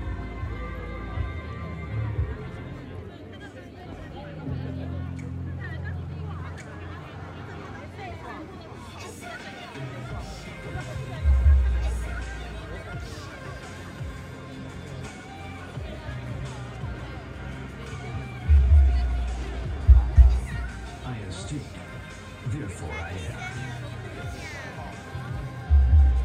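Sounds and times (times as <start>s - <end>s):
crowd murmur at a music festival: 0.0s - 26.2s
heavy low rumble: 18.5s - 20.9s
deep thumps: 19.7s - 20.7s.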